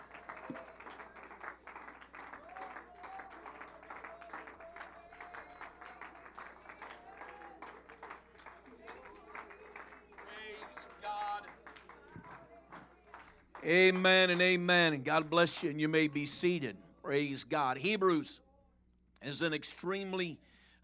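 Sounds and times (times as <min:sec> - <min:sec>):
audience clapping hands: 0:00.0 - 0:16.5
speech: 0:13.6 - 0:18.4, 0:19.2 - 0:20.6.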